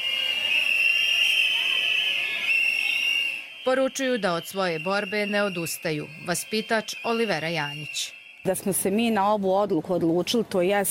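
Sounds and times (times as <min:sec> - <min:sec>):
shrill whistling from preschool education centre employees on a protest walk: 0:00.0 - 0:08.5
speech: 0:03.6 - 0:10.8.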